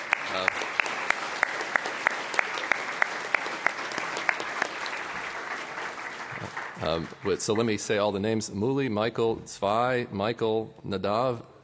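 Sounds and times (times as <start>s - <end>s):
audience clapping for award: 0.0s - 8.1s
speech: 6.8s - 11.5s.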